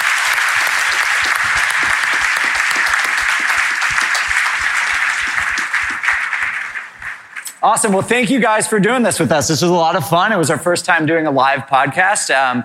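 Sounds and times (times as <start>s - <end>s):
audience applause: 0.0s - 7.5s
speech: 7.6s - 12.6s.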